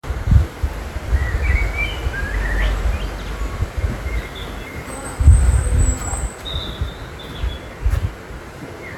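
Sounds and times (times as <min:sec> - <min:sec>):
bird chirping: 0:01.0 - 0:08.1.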